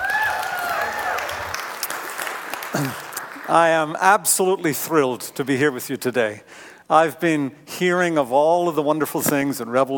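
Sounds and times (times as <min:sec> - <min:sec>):
Revolution Church congregation applause welcoming a guest speaker: 0:00.0 - 0:04.2
speech: 0:02.7 - 0:09.9.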